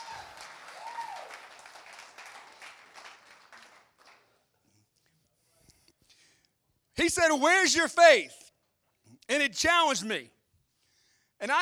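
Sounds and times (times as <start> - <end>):
whistled cheer: 0.0 - 4.2
audience clapping: 0.0 - 4.5
speech: 7.0 - 8.4, 9.3 - 10.4, 11.4 - 11.6.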